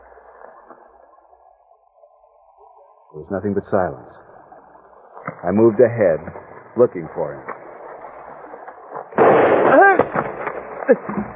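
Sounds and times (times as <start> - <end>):
faint cracks: 0.0 - 3.2, 3.9 - 11.3
speech: 3.1 - 4.3, 5.4 - 7.5, 10.9 - 11.3
rough rumbling wash of noise: 5.0 - 11.3
gunshot: 9.1 - 11.3.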